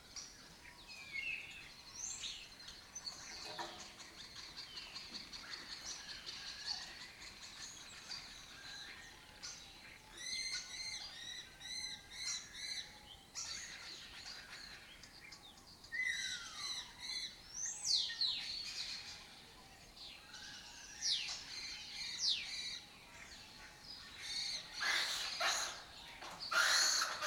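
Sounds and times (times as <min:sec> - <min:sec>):
lesser kestrels calling: 0:01.4 - 0:19.4, 0:20.2 - 0:27.2.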